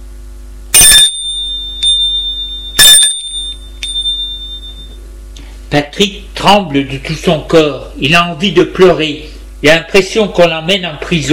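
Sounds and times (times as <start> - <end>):
doorbell ringing: 0.8 - 5.0
speech: 5.7 - 11.3.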